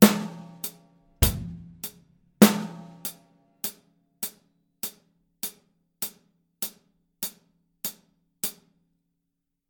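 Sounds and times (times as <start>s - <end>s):
drum solo: 0.0s - 0.6s, 1.2s - 3.1s.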